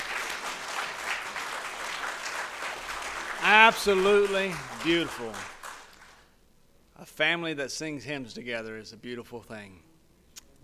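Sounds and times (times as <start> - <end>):
audience applause: 0.0 - 6.3
speech: 3.5 - 5.5, 7.0 - 9.9.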